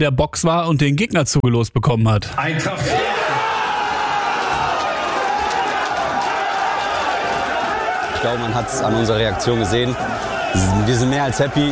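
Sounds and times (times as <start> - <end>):
speech: 0.0 - 3.3, 8.2 - 11.7
crowd cheering: 2.5 - 11.7.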